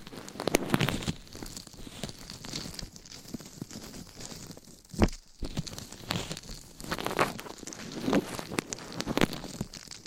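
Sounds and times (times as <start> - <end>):
scratching and brushing against a microphone: 0.0 - 10.0.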